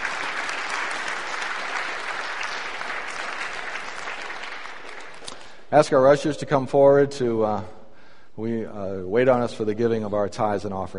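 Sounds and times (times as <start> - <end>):
audience applauding: 0.0 - 5.6
speech: 5.7 - 7.8, 8.4 - 10.9.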